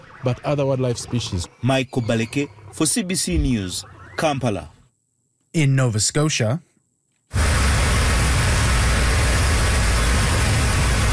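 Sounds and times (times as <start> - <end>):
speech: 0.2 - 4.8, 5.5 - 6.7
water spray from cars driving over a flooded road in southern Cape Breton: 7.3 - 11.1.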